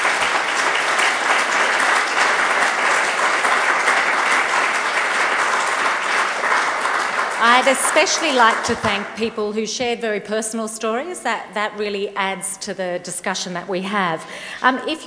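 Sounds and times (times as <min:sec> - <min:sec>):
audience round of applause for the panel: 0:00.0 - 0:09.1
speech: 0:07.5 - 0:15.0.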